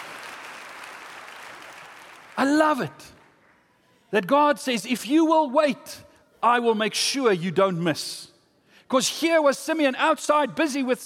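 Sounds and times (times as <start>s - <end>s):
audience applause: 0.0s - 2.6s
speech: 2.4s - 3.2s, 4.1s - 8.3s, 8.9s - 11.0s.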